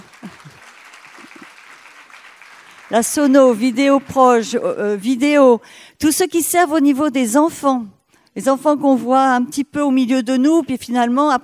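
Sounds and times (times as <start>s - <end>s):
audience clapping: 0.0s - 4.9s
speech: 2.9s - 11.4s.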